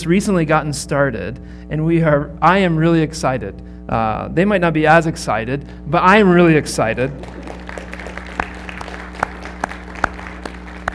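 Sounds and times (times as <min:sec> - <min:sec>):
speech: 0:00.0 - 0:07.5
audience clapping: 0:07.0 - 0:10.9.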